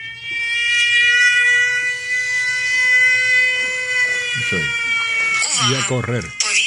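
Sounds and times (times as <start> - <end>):
air raid alarm siren: 0.0 - 6.6
speech: 4.5 - 6.4.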